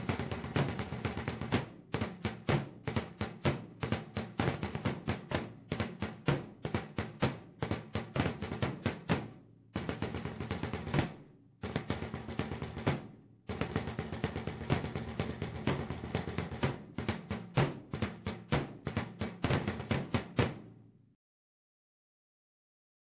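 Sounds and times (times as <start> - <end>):
marching drums: 0.0 - 20.8.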